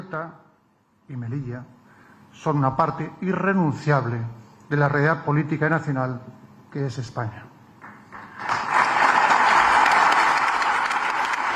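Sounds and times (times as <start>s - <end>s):
speech: 0.1s - 0.5s, 1.1s - 7.5s
audience applause: 8.1s - 11.5s.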